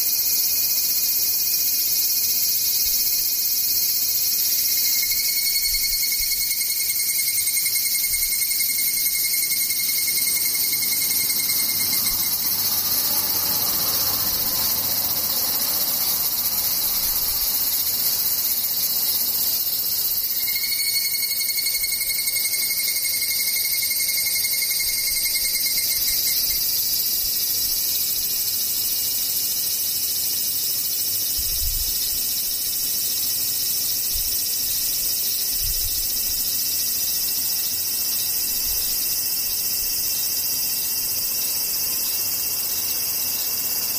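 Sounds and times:
insects buzzing and trilling: 0.0s - 43.9s.

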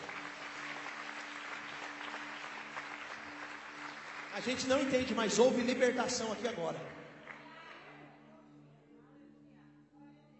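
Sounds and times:
audience applauding: 0.0s - 7.8s
speech: 4.4s - 7.0s.

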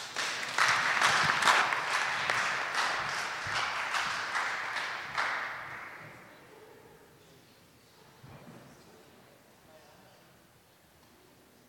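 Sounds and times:
audience applause: 0.0s - 6.2s.

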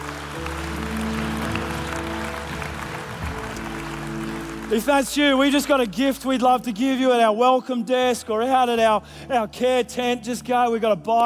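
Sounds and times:
audience applauding at a church service after a prayer: 0.0s - 6.8s
speech: 4.7s - 11.2s.

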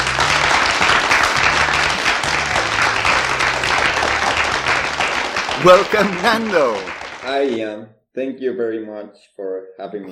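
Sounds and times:
audience applause: 0.0s - 7.6s
speech: 5.6s - 10.0s.

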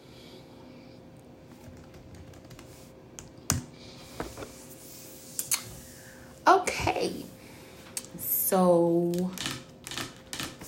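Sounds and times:
low steady hum: 0.0s - 10.6s
typing on a computer keyboard: 1.6s - 2.7s
speech: 8.5s - 9.4s.

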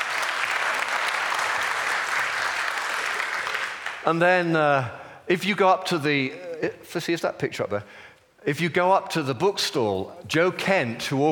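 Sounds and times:
audience clapping: 0.0s - 4.5s
speech: 4.0s - 11.3s.

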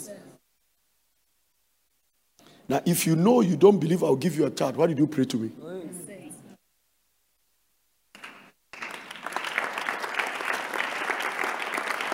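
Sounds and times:
speech: 2.7s - 5.7s
audience clapping: 8.2s - 12.1s.

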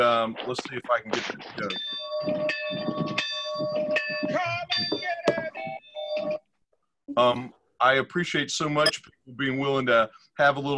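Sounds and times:
speech: 0.0s - 5.2s, 7.2s - 10.7s
bell ringing: 1.6s - 6.4s.

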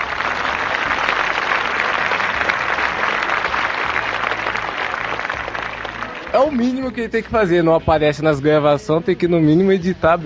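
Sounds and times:
crowd applauding: 0.0s - 6.9s
speech: 6.4s - 10.2s.

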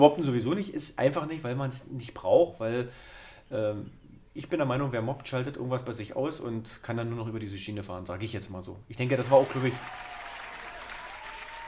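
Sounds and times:
speech: 0.0s - 10.1s
applause: 9.2s - 11.6s.

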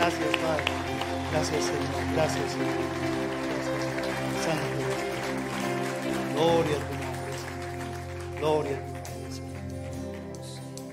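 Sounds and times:
audience applauding: 0.0s - 10.9s
sustained musical tones: 0.0s - 10.9s
speech: 1.3s - 3.2s, 6.4s - 7.0s, 8.4s - 8.9s.

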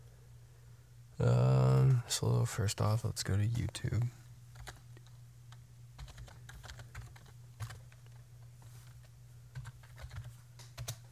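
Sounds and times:
steady low hum: 0.0s - 11.1s
speech: 1.2s - 1.5s, 2.1s - 4.2s
typing on a computer keyboard: 4.5s - 5.1s, 6.0s - 8.2s, 9.5s - 11.1s.

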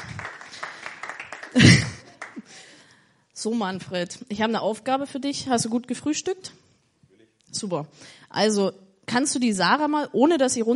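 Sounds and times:
audience applause: 0.0s - 2.5s
speech: 3.4s - 6.6s, 7.6s - 10.7s.

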